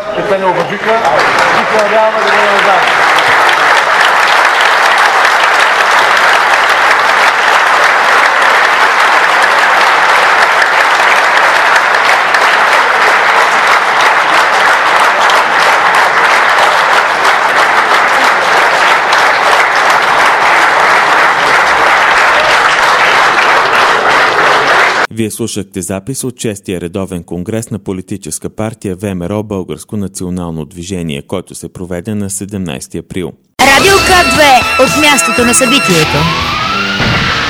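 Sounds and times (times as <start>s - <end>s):
standing audience applause: 0.0s - 25.1s, 33.6s - 37.4s
speech: 0.3s - 3.0s, 25.2s - 36.6s.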